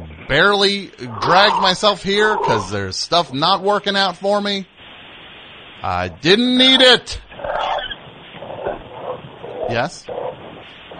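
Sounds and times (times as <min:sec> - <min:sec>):
speech: 0:00.3 - 0:04.7, 0:05.8 - 0:07.2, 0:09.7 - 0:10.2
frogs croaking: 0:01.0 - 0:02.8, 0:06.6 - 0:10.9.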